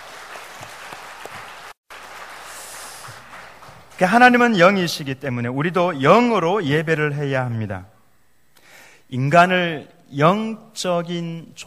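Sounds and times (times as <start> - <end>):
audience applauding the worship team: 0.0 - 4.7
speech: 4.0 - 7.9, 9.1 - 11.6.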